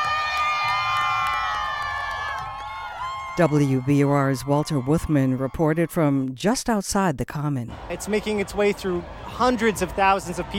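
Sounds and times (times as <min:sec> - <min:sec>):
crowd cheering and whooping at parade: 0:00.0 - 0:05.5, 0:07.7 - 0:10.5
speech: 0:03.4 - 0:10.5.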